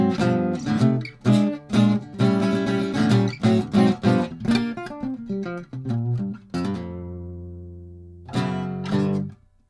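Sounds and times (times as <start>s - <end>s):
jazz on a 1933 Gibson L10 archtop guitar: 0.0s - 9.6s.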